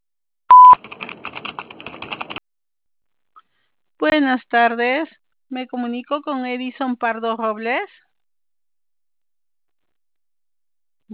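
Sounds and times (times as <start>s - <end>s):
voicemail beep tone before recording: 0.5s - 0.8s
speech: 4.0s - 8.0s.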